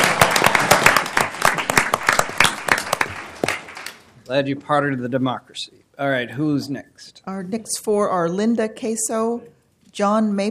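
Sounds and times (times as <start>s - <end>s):
audience applause: 0.0s - 4.0s
speech: 4.3s - 10.4s.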